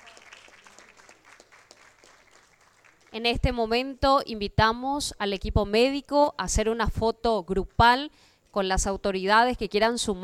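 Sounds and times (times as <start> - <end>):
audience applause: 0.0 - 3.2
speech: 3.1 - 10.2.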